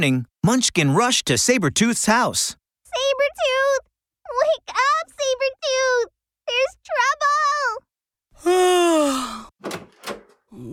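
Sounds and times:
speech: 0.0s - 6.1s, 6.9s - 7.8s, 8.4s - 9.9s, 10.6s - 10.7s
door opening: 9.6s - 10.6s.

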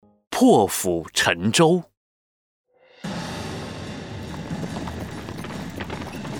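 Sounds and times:
speech: 0.4s - 1.9s
Chu army horses galloping through the night: 4.2s - 6.3s.

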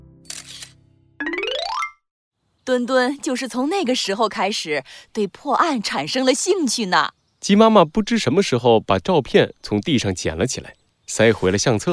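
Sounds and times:
camera shutter click: 0.3s - 0.8s
speech: 2.7s - 11.9s.

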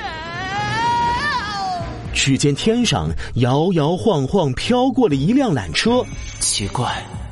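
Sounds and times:
scream from the sky: 0.0s - 2.0s
speech: 2.2s - 7.2s.

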